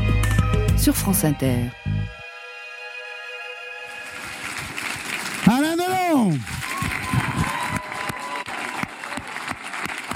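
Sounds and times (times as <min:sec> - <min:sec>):
speech: 0:00.8 - 0:02.2
audience applause: 0:03.9 - 0:10.1.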